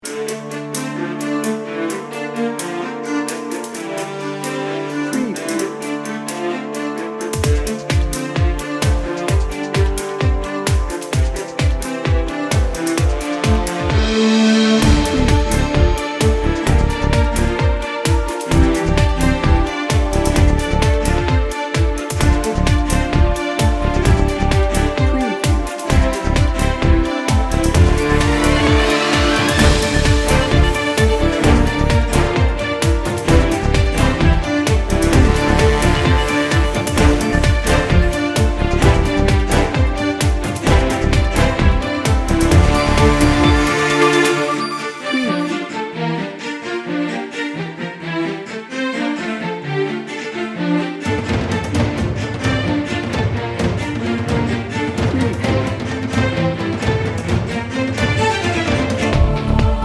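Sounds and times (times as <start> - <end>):
heroic power music: 0.0 - 59.8.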